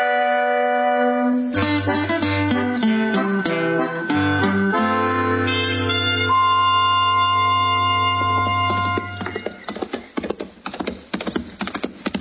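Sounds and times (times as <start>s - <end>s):
sustained musical chord: 0.1s - 9.2s
horse hooves clip-clopping: 7.8s - 12.2s.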